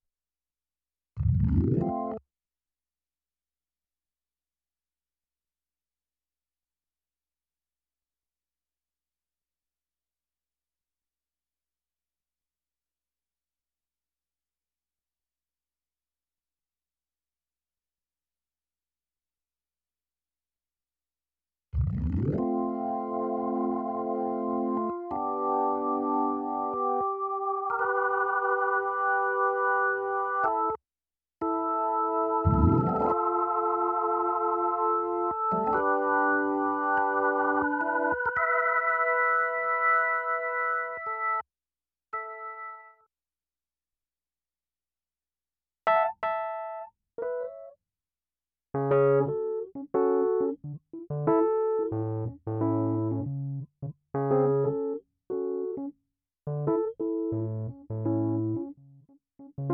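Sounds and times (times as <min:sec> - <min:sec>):
keyboard music: 0:01.4 - 0:02.2, 0:22.2 - 0:30.8, 0:31.4 - 0:41.4, 0:42.2 - 0:43.0, 0:45.9 - 0:47.8, 0:48.8 - 0:55.9, 0:56.5 - 0:59.7.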